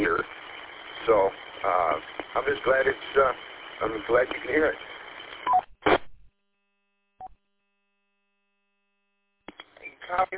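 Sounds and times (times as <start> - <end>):
radio Roger beep tone: 0.0 - 5.7, 9.6 - 10.3
speech: 2.0 - 4.9.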